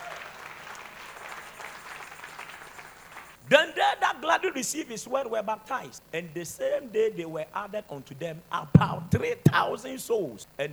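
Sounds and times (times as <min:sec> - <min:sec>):
audience clapping: 0:00.0 - 0:03.4
speech: 0:04.2 - 0:10.7.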